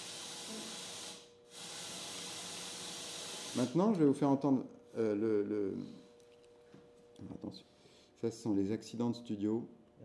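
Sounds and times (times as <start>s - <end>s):
white noise played through all speakers: 0.0s - 4.2s
speech: 3.6s - 6.1s, 7.2s - 10.0s.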